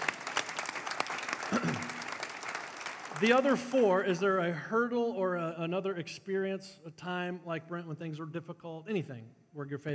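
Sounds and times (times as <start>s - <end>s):
audience clapping: 0.0s - 4.4s
speech: 3.2s - 9.9s.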